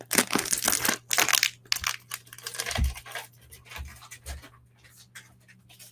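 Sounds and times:
package of spring roll wrappers being opened: 0:00.0 - 0:04.1.

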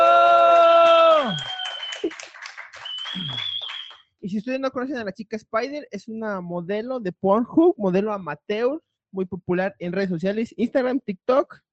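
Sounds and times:
applause: 0:00.0 - 0:04.0
speech: 0:04.3 - 0:11.7.

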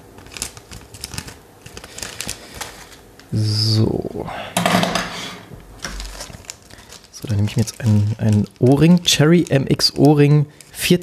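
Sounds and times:
scissors cutting open a plastic bag: 0:00.0 - 0:03.3, 0:05.8 - 0:11.0
speech: 0:03.3 - 0:04.8, 0:07.3 - 0:11.0.

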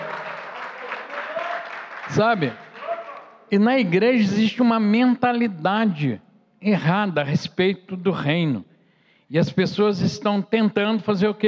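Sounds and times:
audience applauding: 0:00.0 - 0:04.1
speech: 0:02.1 - 0:02.6, 0:03.5 - 0:08.7, 0:09.3 - 0:11.4.

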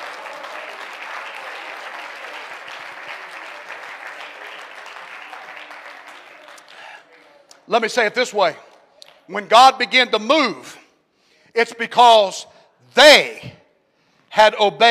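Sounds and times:
audience clapping hands: 0:00.0 - 0:07.8
speech: 0:07.7 - 0:08.7, 0:09.3 - 0:10.8, 0:11.6 - 0:13.5, 0:14.4 - 0:14.8.

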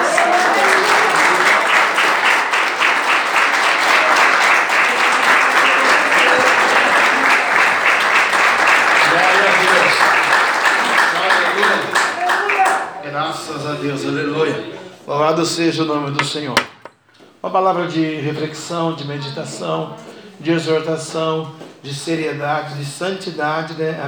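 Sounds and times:
audience applause: 0:00.0 - 0:13.0
speech: 0:13.7 - 0:16.7, 0:17.4 - 0:24.0.

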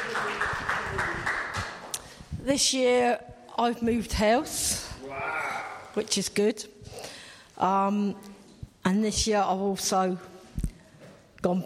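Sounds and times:
audience applause: 0:00.0 - 0:01.8
speech: 0:02.5 - 0:05.4, 0:06.0 - 0:06.7, 0:07.6 - 0:10.3, 0:11.4 - 0:11.6.

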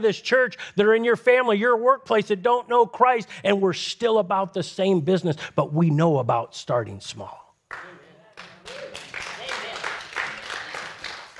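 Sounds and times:
speech: 0:00.0 - 0:07.9
weak audience applause: 0:07.7 - 0:11.3.

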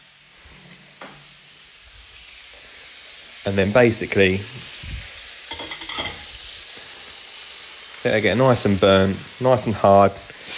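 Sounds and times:
cheese sandwich sizzling on a hot grill: 0:00.0 - 0:10.5
speech: 0:03.4 - 0:04.7, 0:08.0 - 0:10.3.

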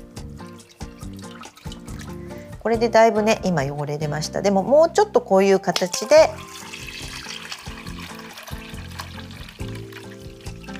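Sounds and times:
rinsing water drained off oysters: 0:00.0 - 0:02.6, 0:05.8 - 0:10.7
speech: 0:02.6 - 0:06.6.

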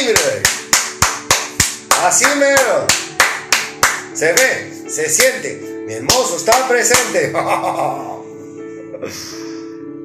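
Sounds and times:
hand claps: 0:00.0 - 0:07.3
speech: 0:02.1 - 0:03.4, 0:04.2 - 0:08.2, 0:09.0 - 0:09.4
laughter: 0:07.2 - 0:08.2.

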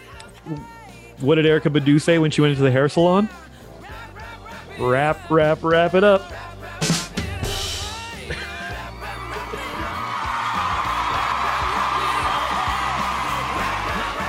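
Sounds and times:
speech: 0:00.5 - 0:03.5, 0:04.8 - 0:06.5
crowd applause: 0:08.7 - 0:14.2.

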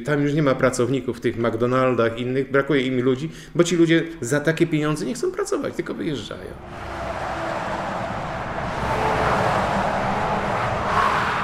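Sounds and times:
speech: 0:00.0 - 0:07.1
car driving toward a motorway junction: 0:06.4 - 0:11.4.

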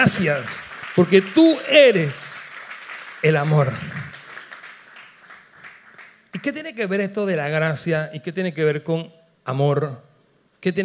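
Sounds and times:
speech: 0:00.0 - 0:02.5, 0:03.2 - 0:04.0, 0:06.4 - 0:10.8
audience applause: 0:00.0 - 0:06.3.

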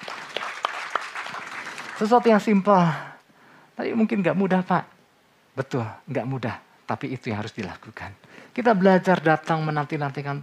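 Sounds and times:
audience applause: 0:00.0 - 0:02.6
speech: 0:02.0 - 0:03.1, 0:03.8 - 0:04.9, 0:05.6 - 0:10.4.

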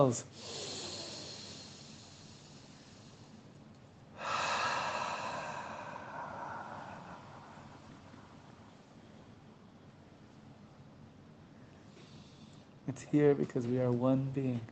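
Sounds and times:
speech: 0:00.0 - 0:00.7, 0:13.0 - 0:14.7
deep breath during guided breathing: 0:00.3 - 0:03.4, 0:04.2 - 0:08.9, 0:11.8 - 0:12.8.

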